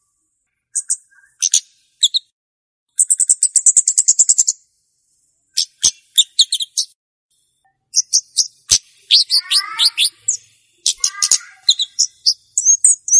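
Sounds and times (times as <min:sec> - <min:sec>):
flowerpecker song: 0:00.0 - 0:02.3, 0:02.9 - 0:13.1.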